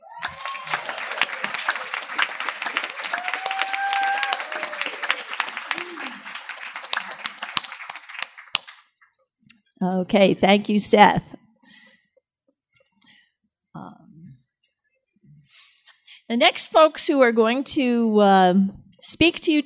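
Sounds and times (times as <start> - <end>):
audience applause: 0.0 - 8.9
speech: 9.8 - 11.4, 16.3 - 19.6.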